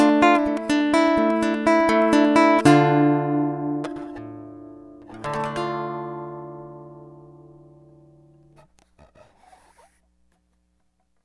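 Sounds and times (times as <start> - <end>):
guitar playing in D minor: 0.0 - 8.6.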